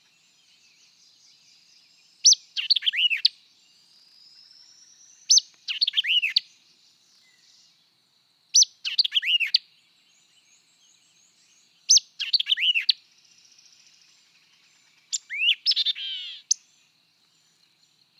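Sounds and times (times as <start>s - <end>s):
white-eyed vireo song of sharp chips and slurred whistles: 2.2s - 3.3s, 4.4s - 6.5s, 8.6s - 9.6s, 11.9s - 13.0s, 15.1s - 16.7s.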